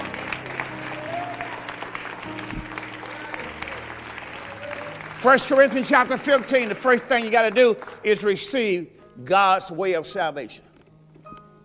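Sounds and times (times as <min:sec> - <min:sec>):
audience clapping hands: 0:00.0 - 0:08.8
speech: 0:05.2 - 0:10.7.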